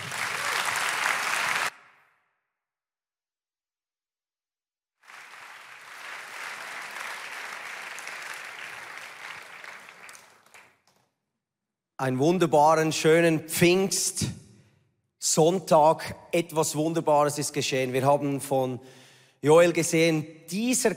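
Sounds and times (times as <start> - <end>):
audience applause: 0.0 - 2.0, 5.0 - 11.0
speech: 12.0 - 14.4, 15.3 - 20.9.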